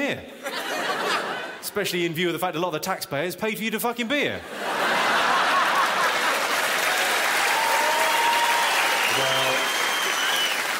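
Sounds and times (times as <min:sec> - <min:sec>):
speech: 0:00.1 - 0:00.4, 0:01.8 - 0:04.7
laughter: 0:00.3 - 0:01.6, 0:04.4 - 0:07.0
audience applause: 0:05.2 - 0:10.7.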